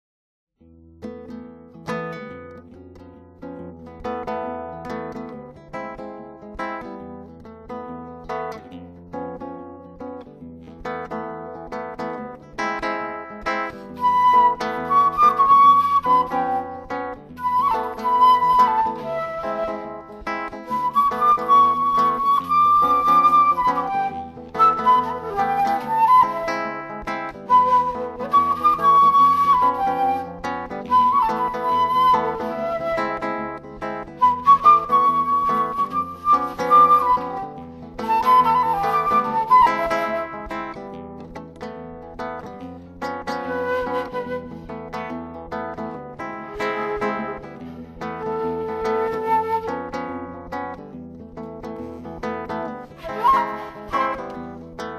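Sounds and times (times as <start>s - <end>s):
flute sketches: 14.0s - 40.8s, 43.5s - 44.6s, 46.5s - 50.4s, 52.9s - 54.6s.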